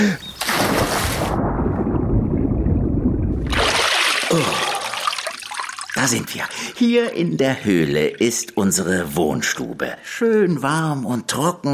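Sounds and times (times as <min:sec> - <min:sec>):
splash as something plunges into water: 0:00.4 - 0:06.2
water splashing and trickling: 0:00.4 - 0:09.8
bubbling underwater rumble: 0:01.3 - 0:04.9
speech: 0:06.0 - 0:11.7.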